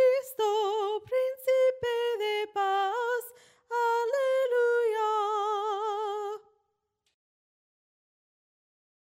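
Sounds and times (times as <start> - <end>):
soprano singing: 0.0 - 6.6.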